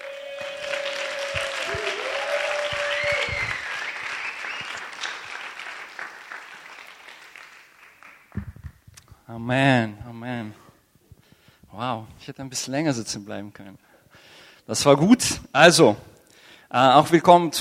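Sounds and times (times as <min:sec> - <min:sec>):
applause: 0:00.0 - 0:08.8
speech: 0:09.3 - 0:10.6, 0:11.8 - 0:13.8, 0:14.7 - 0:16.1, 0:16.7 - 0:17.6.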